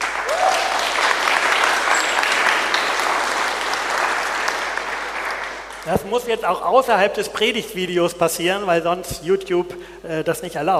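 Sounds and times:
audience applause: 0.0s - 6.1s
speech: 5.8s - 10.7s.

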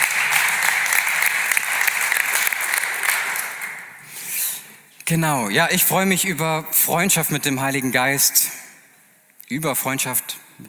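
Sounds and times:
audience applause: 0.0s - 4.1s
speech: 5.1s - 8.6s, 9.5s - 10.6s.

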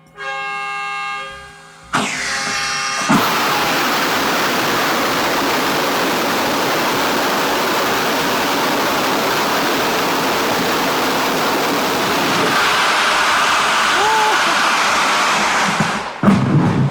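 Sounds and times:
warning horn tone: 0.0s - 3.1s
rocket engine test firing roar: 1.9s - 16.8s.

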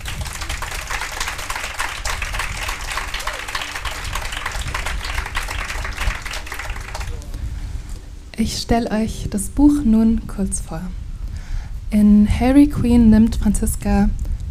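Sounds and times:
audience clapping: 0.0s - 7.4s
speech: 8.4s - 11.0s, 11.9s - 14.2s.

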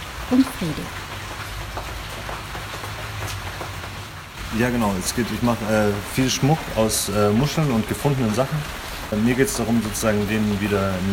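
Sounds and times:
rain pattering on a tarpaulin: 0.0s - 11.1s
speech: 0.3s - 1.1s, 4.5s - 11.1s.

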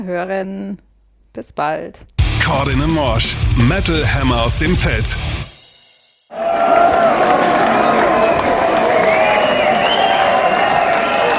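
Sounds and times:
speech: 0.0s - 5.5s
closing applause of a concert audience: 6.3s - 11.3s.

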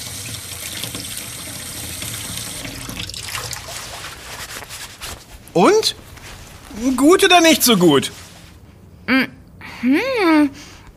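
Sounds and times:
tap water running into a sink while a leaf is rinsed: 0.0s - 3.8s
speech: 5.6s - 6.0s, 6.8s - 8.2s.

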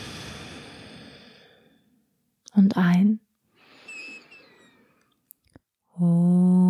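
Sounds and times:
long soft exhale during a guided yoga and meditation session: 0.0s - 1.8s, 3.6s - 5.0s
speech: 2.6s - 3.2s, 6.0s - 6.6s.

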